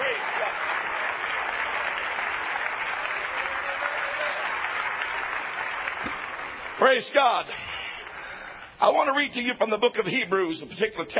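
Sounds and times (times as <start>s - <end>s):
audience clapping: 0.0s - 8.7s
speech: 6.8s - 7.8s, 8.8s - 11.1s.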